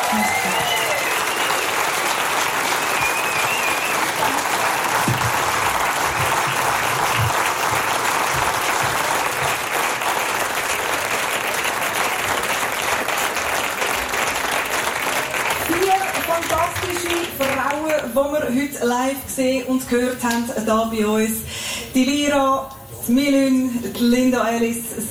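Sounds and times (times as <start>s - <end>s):
audience applause: 0.0s - 18.4s
speech: 0.1s - 0.8s, 18.5s - 25.0s.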